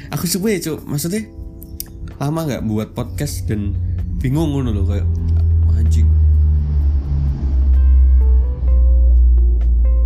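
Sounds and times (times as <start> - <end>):
speech: 0.1 - 1.4, 2.2 - 5.2, 5.8 - 6.2
airplane passing close overhead: 2.6 - 9.2.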